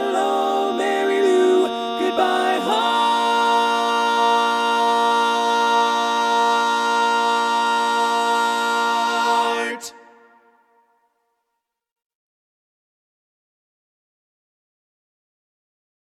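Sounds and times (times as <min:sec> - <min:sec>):
tenor voice singing learning track: 0:00.0 - 0:10.9.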